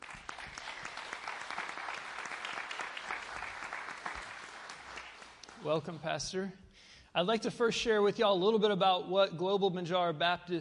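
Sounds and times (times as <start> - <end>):
church audience applauding a visiting pastor: 0.0 - 6.2
speech: 5.6 - 10.6.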